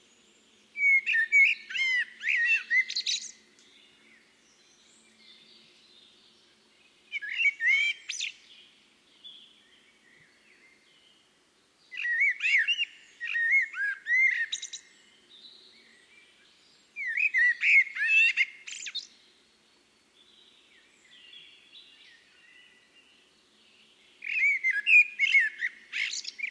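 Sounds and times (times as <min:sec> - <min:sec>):
Eurasian blackbird calling with sharp high chinking notes: 0:00.8 - 0:03.4, 0:11.9 - 0:14.9, 0:17.0 - 0:19.1, 0:24.2 - 0:26.4.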